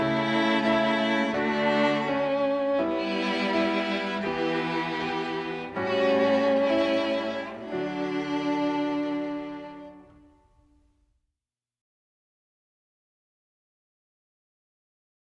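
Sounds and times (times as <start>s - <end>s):
music: 0.0s - 11.2s.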